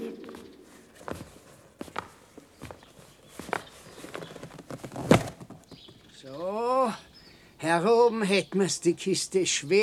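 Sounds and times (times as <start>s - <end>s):
footsteps climbing a flight of stairs: 0.2s - 6.0s
speech: 7.7s - 9.8s.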